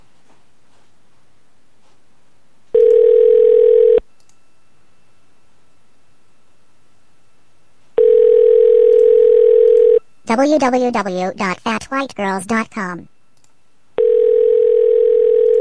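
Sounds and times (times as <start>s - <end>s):
telephone line tones while calling a number back: 2.8s - 4.0s, 8.0s - 10.0s, 14.0s - 15.6s
speech: 10.3s - 13.1s.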